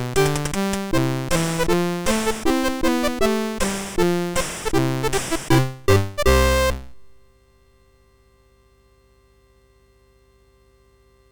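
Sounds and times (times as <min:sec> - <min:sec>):
computer-synthesized fireworks celebration on a MOS6581R3 sound chip: 0:00.0 - 0:06.8.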